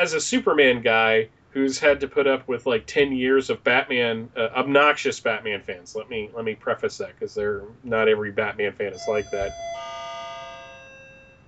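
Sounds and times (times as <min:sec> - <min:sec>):
speech: 0:00.0 - 0:09.9
ringing bells: 0:08.9 - 0:11.4.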